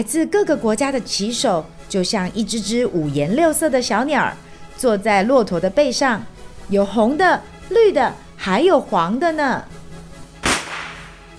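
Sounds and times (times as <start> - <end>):
speech: 0.0 - 9.8
starting gun shot: 10.4 - 11.2.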